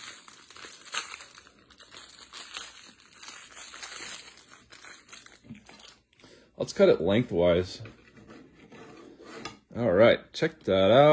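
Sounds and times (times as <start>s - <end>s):
plastic wrapper of a packaged filled snack crinkling as torn open: 0.0s - 6.2s
speech: 6.6s - 8.0s, 9.8s - 11.1s.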